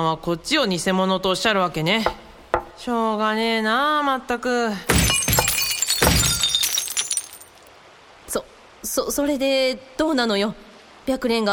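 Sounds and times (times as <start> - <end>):
speech: 0.0 - 2.2, 2.8 - 5.0, 8.3 - 11.5
object smashed with a wooden mallet: 4.9 - 7.6.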